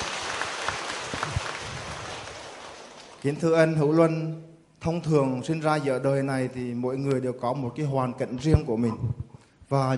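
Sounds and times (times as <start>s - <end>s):
audience applause: 0.0s - 3.2s
speech: 3.2s - 9.9s.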